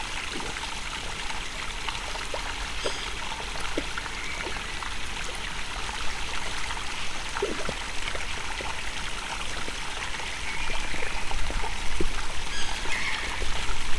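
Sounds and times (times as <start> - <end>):
lakeside water birds at Miskolc zoo: 0.0 - 13.9.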